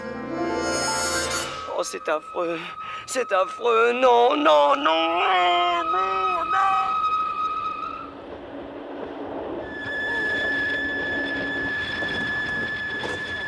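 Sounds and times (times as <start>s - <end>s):
train brake squeals: 0.8s - 8.2s, 9.6s - 13.4s
speech: 1.8s - 7.0s
train carriages rattling: 6.1s - 13.4s.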